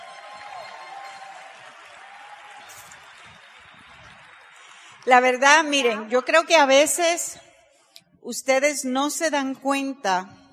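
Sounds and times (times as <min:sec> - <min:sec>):
audience applause: 0:00.0 - 0:05.4
speech: 0:05.0 - 0:07.4, 0:08.3 - 0:10.4.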